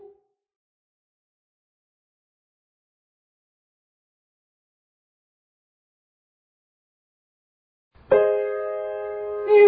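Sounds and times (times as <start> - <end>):
descending triad arpeggio: 8.1 - 9.5.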